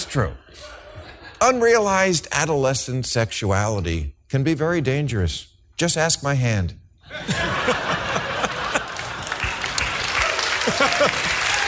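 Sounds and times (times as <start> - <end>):
speech: 0.1 - 0.8, 1.4 - 7.8
laughter: 0.5 - 1.4, 7.0 - 11.6
crowd applause: 7.3 - 11.6.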